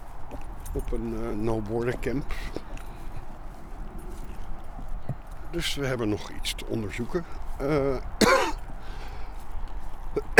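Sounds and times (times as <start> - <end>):
speech: 0.7 - 2.7, 5.5 - 8.4
person coughing: 8.2 - 8.6, 10.2 - 10.3.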